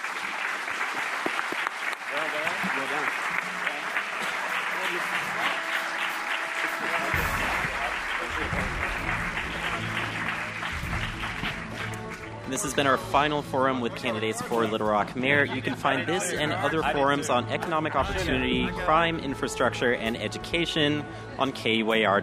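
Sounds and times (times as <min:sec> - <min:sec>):
audience applause: 0:00.0 - 0:13.0
speech: 0:12.6 - 0:22.2
laughter: 0:13.8 - 0:18.8.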